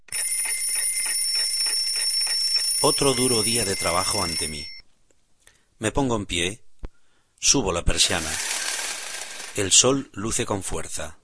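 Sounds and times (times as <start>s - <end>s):
mechanical alarm clock bell ringing: 0.1s - 4.8s
speech: 2.8s - 4.7s, 5.8s - 6.6s, 7.4s - 8.6s, 9.6s - 11.2s.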